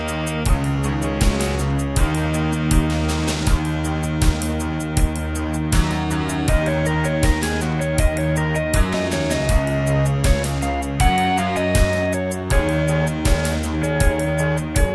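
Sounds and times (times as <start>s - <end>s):
Terratec MiniWaveSystem WT64 wavetable music: 0.0s - 14.9s.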